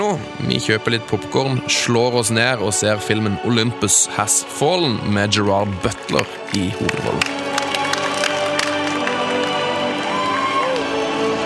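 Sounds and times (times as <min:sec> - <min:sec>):
speech: 0:00.0 - 0:07.6
cinema audience cheering: 0:07.0 - 0:11.4.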